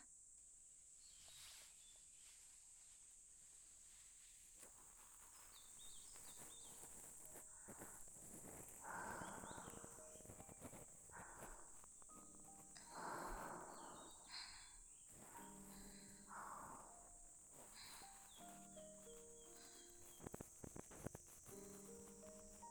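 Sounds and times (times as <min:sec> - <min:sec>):
ear cleaning sounds for sleep: 0:04.6 - 0:22.6.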